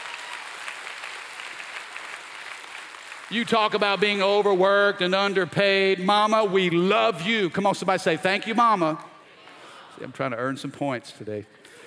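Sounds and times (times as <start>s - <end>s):
audience clapping: 0.0s - 5.1s
speech: 3.3s - 9.1s, 10.0s - 11.8s.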